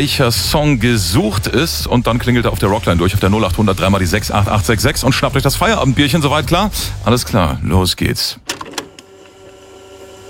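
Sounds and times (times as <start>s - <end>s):
speech: 0.0s - 8.5s
cassette tape pushed into a walkman: 8.4s - 9.1s.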